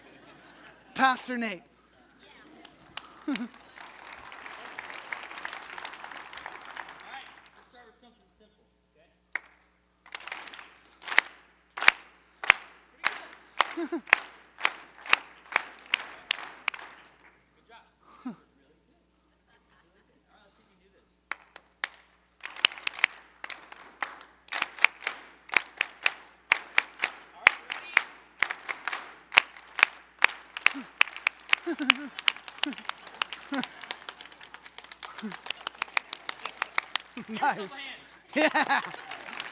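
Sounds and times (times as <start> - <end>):
laughter: 0.0 - 5.0, 13.6 - 14.2, 19.2 - 20.4, 30.6 - 39.4
church congregation clapping along in rhythm, led by a pastor: 1.0 - 1.6, 2.6 - 7.8, 9.3 - 17.4, 21.3 - 39.4
speech: 1.0 - 1.7, 3.2 - 3.6, 13.9 - 14.1, 37.5 - 39.1
looser applause: 2.4 - 7.8, 9.4 - 17.2, 21.3 - 39.4.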